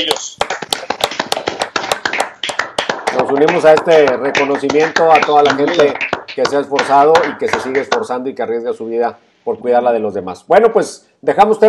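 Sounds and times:
applause: 0.0s - 8.2s
speech: 3.3s - 11.6s.

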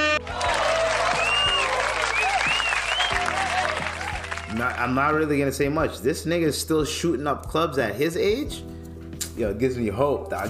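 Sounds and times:
applause sound effect: 0.2s - 4.8s
speech: 4.8s - 8.7s, 9.4s - 10.4s.

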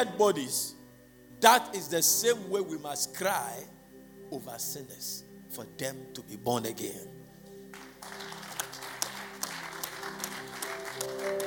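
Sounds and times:
speech: 0.0s - 0.8s, 1.4s - 7.2s
audience clapping: 7.7s - 11.4s.

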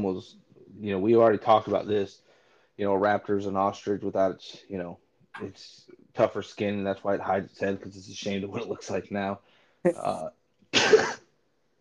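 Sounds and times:
speech: 0.0s - 2.2s, 2.8s - 11.2s
sneeze: 10.8s - 11.2s.

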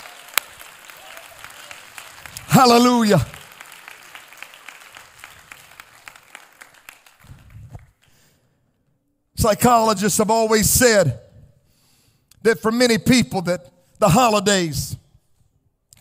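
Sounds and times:
audience clapping hands: 0.0s - 8.4s
speech: 2.6s - 3.4s, 9.4s - 11.2s, 12.4s - 15.0s.

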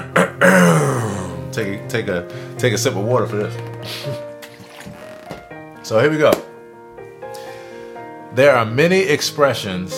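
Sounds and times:
throat clearing: 0.0s - 1.2s
speech: 1.6s - 4.2s, 5.9s - 6.4s, 8.4s - 9.9s.

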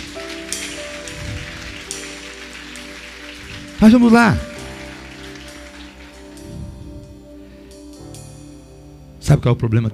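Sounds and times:
audience applauding: 0.0s - 7.2s
speech: 3.8s - 4.5s, 9.3s - 9.9s.

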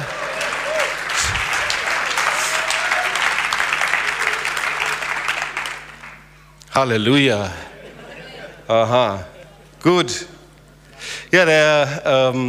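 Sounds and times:
laughter: 0.0s - 2.7s, 7.5s - 9.8s
crowd clapping: 0.0s - 6.4s
speech: 6.8s - 7.6s, 8.7s - 10.4s, 11.3s - 12.4s.

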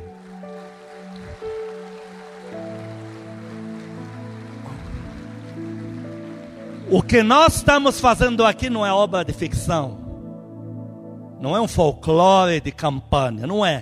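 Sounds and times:
audience applauding: 0.0s - 8.9s
speech: 6.9s - 10.0s, 11.4s - 13.8s.

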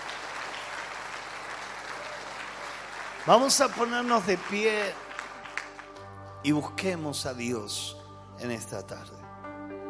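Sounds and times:
audience applause: 0.0s - 6.1s
speech: 3.2s - 5.0s, 6.4s - 9.2s.

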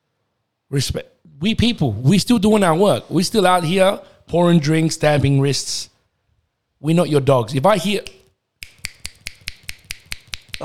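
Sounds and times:
speech: 0.7s - 5.9s, 6.8s - 8.2s
finger snapping to summon bar staff: 8.0s - 10.6s.

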